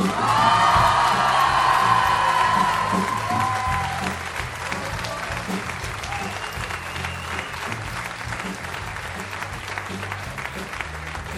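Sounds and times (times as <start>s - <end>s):
audience cheers and whoops: 0.0s - 4.3s, 6.0s - 7.7s
audience applause at a school music event: 0.0s - 11.3s.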